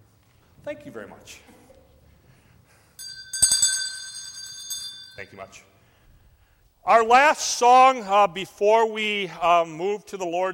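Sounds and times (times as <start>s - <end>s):
speech: 0.6s - 1.6s, 5.2s - 5.7s, 6.8s - 10.5s
bell ringing in church service: 3.0s - 5.7s.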